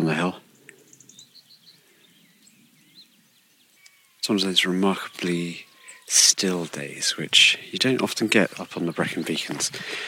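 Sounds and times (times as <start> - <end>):
faint dawn chorus birdsong on hillside: 0.0 - 10.0
speech: 4.2 - 10.0.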